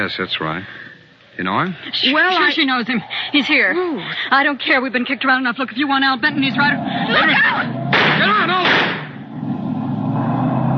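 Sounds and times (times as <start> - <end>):
speech: 0.0 - 9.0
car speeding past with engine roaring: 6.1 - 10.7.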